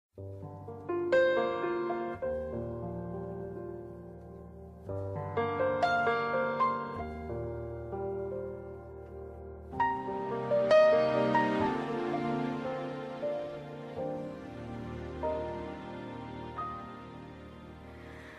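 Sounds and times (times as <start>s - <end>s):
sad piano music: 0.2s - 18.3s.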